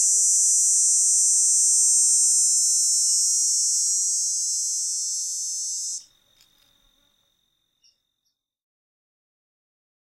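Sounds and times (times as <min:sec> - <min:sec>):
dog-day cicada buzzing: 0:00.0 - 0:06.1
insects: 0:00.0 - 0:08.6.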